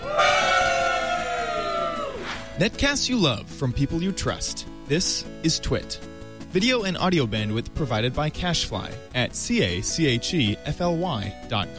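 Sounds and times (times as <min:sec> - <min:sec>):
live studio audience cheering: 0:00.0 - 0:02.6
speech: 0:02.6 - 0:11.7.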